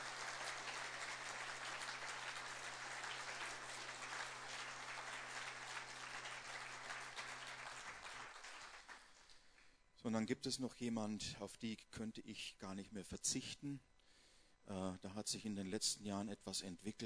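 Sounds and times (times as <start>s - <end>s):
audience applause: 0.0s - 9.1s
speech: 10.0s - 13.9s, 14.6s - 17.0s.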